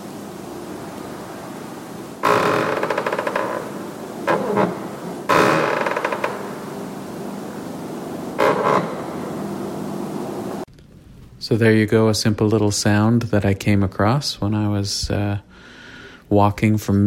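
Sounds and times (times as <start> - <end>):
old wooden church floorboard creaking underfoot: 2.2 - 6.6, 8.4 - 9.2
speech: 11.5 - 15.7, 16.3 - 17.0.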